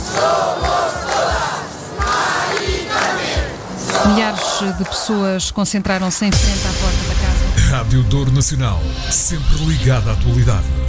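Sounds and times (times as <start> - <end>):
large crowd chanting slogans at a march: 0.0 - 6.0
low rhythmic thumps: 0.0 - 10.8
speech: 4.0 - 10.8.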